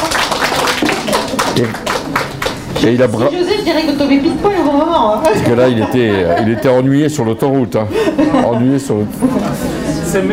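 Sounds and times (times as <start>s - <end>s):
audience in a French-speaking gathering applauding: 0.0s - 3.3s
speech: 1.6s - 1.9s, 2.8s - 10.3s
laughter: 5.3s - 10.0s.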